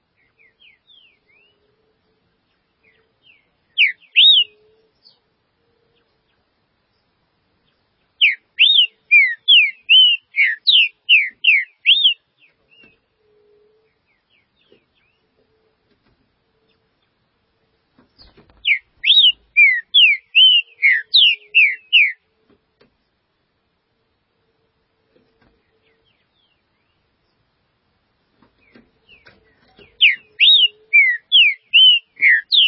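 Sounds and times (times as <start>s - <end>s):
green-winged saltator whistled song: 0.2s - 1.7s, 2.8s - 5.2s, 8.2s - 15.2s, 18.2s - 22.2s, 28.6s - 32.6s.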